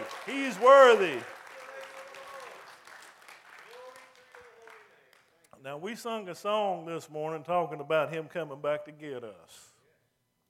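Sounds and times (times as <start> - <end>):
audience clapping: 0.0 - 5.5
speech: 0.3 - 1.4, 5.6 - 9.7.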